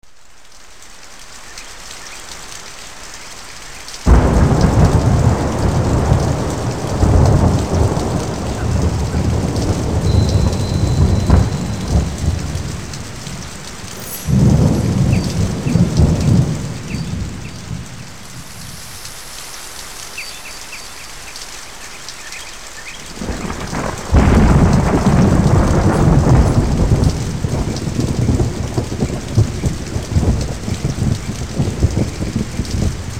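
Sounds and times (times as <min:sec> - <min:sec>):
African rain: 0:00.0 - 0:33.1.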